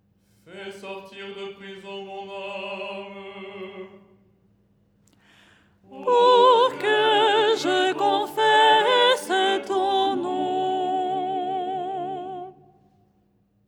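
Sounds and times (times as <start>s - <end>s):
soprano singing: 5.9s - 12.8s.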